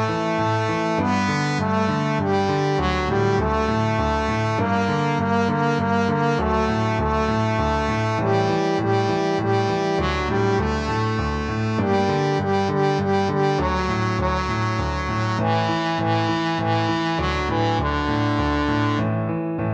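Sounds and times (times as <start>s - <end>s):
trombone playing a traditional lullaby: 0.0s - 19.6s.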